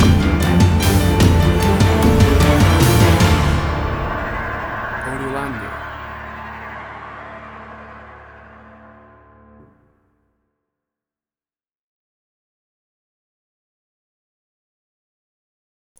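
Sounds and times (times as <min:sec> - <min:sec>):
action trailer music cue stinger: 0:00.0 - 0:09.9.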